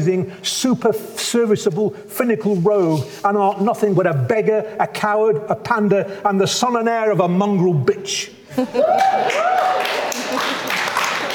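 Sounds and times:
speech: 0.0s - 9.7s
crowd whooping and cheering: 8.6s - 11.3s
audience applause: 8.7s - 11.3s.

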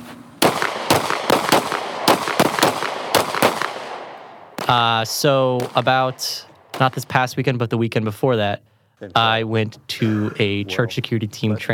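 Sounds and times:
gunshots at a church security team training course in Forest, Mississippi: 0.4s - 7.5s
speech: 4.7s - 11.7s.

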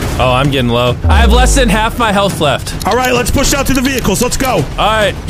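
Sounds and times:
speech: 0.2s - 5.2s
video game rocket launcher explosion: 1.1s - 2.0s
chaotic video game combat noise: 1.0s - 2.3s.

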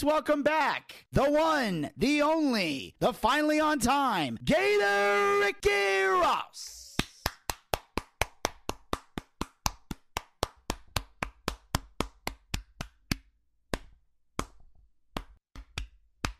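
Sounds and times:
speech: 0.0s - 6.8s
hand claps: 6.9s - 16.3s.

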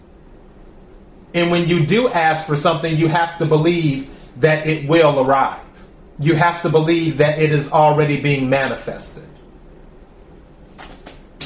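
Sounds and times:
speech: 1.4s - 5.6s, 6.2s - 9.3s
deck of cards being shuffled: 10.7s - 11.4s.

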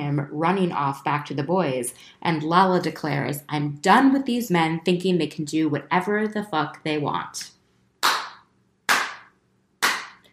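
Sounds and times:
speech: 0.2s - 7.6s
slow clapping: 8.0s - 10.3s.

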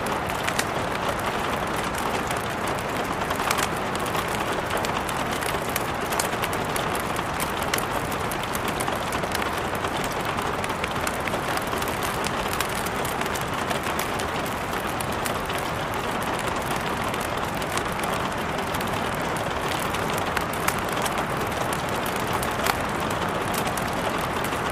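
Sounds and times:
fine snaps and ticks: 0.0s - 24.7s
rainstorm pouring down: 0.0s - 24.7s.

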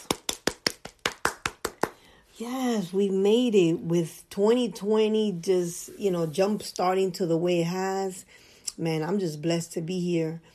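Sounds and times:
single person clapping: 0.0s - 2.0s
speech: 2.4s - 10.5s.

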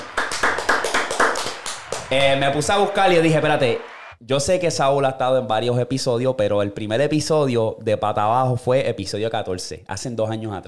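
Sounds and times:
audience applause: 0.0s - 4.2s
speech: 2.1s - 10.6s.

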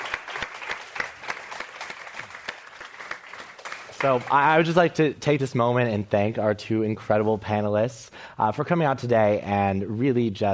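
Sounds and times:
crowd applause: 0.0s - 4.8s
speech: 4.0s - 10.5s.

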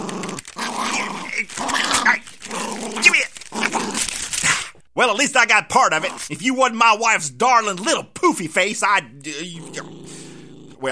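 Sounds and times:
dog growling with a snarling edge: 0.0s - 4.7s, 9.4s - 10.9s
speech: 5.0s - 9.5s.

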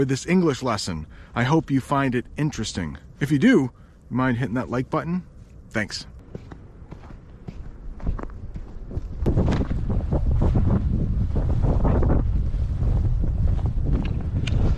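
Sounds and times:
speech: 0.0s - 6.1s
strong wind blowing into the microphone: 8.0s - 14.7s.

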